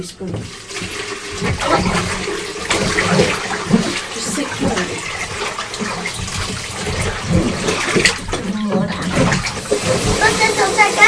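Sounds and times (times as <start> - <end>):
speech: 0.0 - 8.1
clear tap water rushing and splashing into a bath for rinsing: 0.0 - 11.0.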